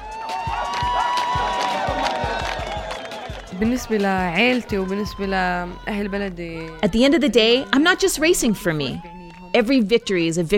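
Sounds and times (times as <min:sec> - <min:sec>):
long wavering whoops and shouts: 0:00.0 - 0:03.6
scattered claps: 0:00.0 - 0:04.8
fans cheering: 0:00.0 - 0:09.9
speech: 0:03.6 - 0:10.5.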